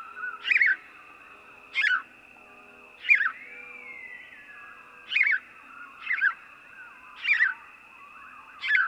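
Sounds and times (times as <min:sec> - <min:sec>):
house sparrow uttering sharp emphatic chirps: 0:00.0 - 0:01.0, 0:01.7 - 0:02.1, 0:03.0 - 0:07.7, 0:08.6 - 0:08.8.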